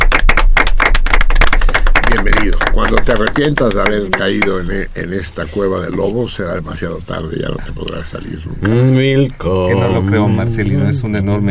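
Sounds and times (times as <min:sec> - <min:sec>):
applause: 0:00.0 - 0:04.6
speech: 0:02.5 - 0:11.4.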